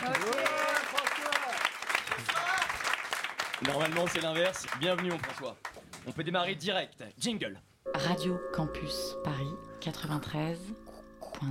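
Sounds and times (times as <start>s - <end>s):
scattered voices and cheers: 0.0s - 2.8s
audience applause: 0.0s - 6.0s
speech: 3.6s - 10.8s.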